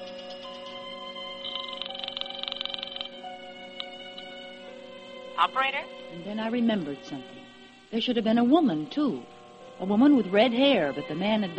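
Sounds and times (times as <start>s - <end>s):
telephone being dialed and ringing: 1.4s - 3.2s
speech: 5.4s - 11.5s.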